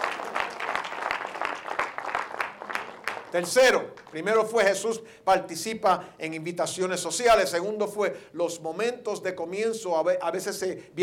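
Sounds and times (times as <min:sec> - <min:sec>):
audience applauding in praise: 0:00.0 - 0:04.4
speech: 0:03.3 - 0:11.0.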